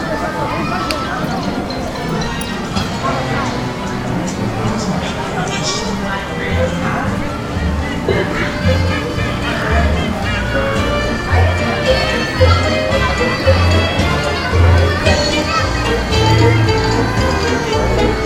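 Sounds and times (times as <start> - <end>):
calls and clatters: 0.0 - 3.2
theme park crowd murmur: 0.0 - 18.2.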